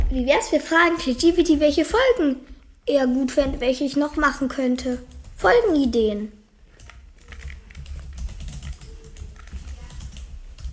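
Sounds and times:
speech: 0.1s - 6.4s
typing on a computer keyboard: 6.7s - 10.7s.

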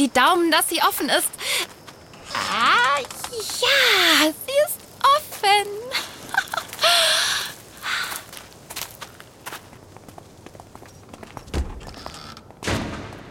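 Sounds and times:
speech: 0.0s - 1.7s, 2.5s - 4.8s
shuffling footsteps: 1.0s - 12.6s
front door slamming shut: 11.5s - 13.2s.

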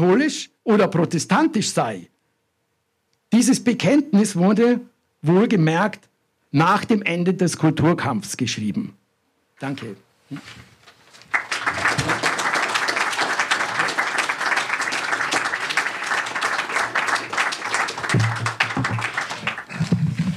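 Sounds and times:
speech: 0.0s - 2.2s, 3.3s - 9.0s, 9.6s - 10.6s
audience applause: 11.1s - 20.3s.

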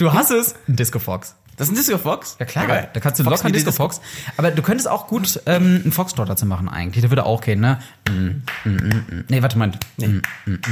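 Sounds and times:
speech: 0.0s - 10.6s
hand claps along to a beat: 8.0s - 9.1s, 9.7s - 10.6s.

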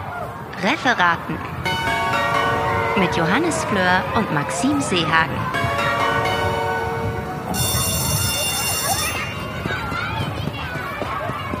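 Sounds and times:
noise: 0.0s - 11.5s
speech: 0.6s - 1.5s, 3.0s - 5.7s
bell ringing to mark the start of a session: 1.6s - 9.9s.

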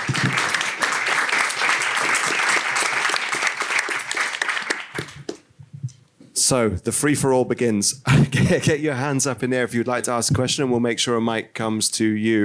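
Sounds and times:
audience applause: 0.0s - 5.4s
speech: 6.5s - 12.4s.

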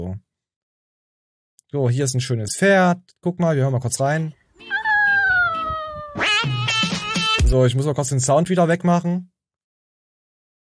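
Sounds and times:
speech: 1.7s - 4.7s, 7.5s - 9.4s
cat meowing: 4.6s - 6.6s.

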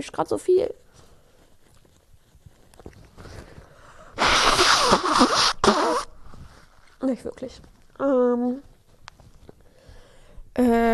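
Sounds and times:
speech: 0.0s - 0.8s, 5.2s - 6.1s, 7.0s - 8.7s, 10.6s - 10.9s
faint rustling: 0.0s - 10.4s
nose blowing: 4.0s - 6.5s.

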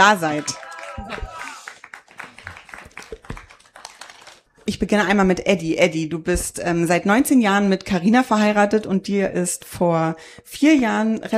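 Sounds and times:
speech: 0.0s - 1.4s, 4.7s - 11.3s
audience applause: 0.0s - 4.5s.

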